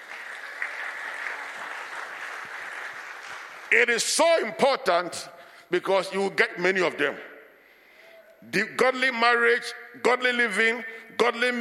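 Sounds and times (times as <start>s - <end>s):
audience applause: 0.0s - 3.8s
speech: 3.7s - 7.3s, 8.4s - 11.6s.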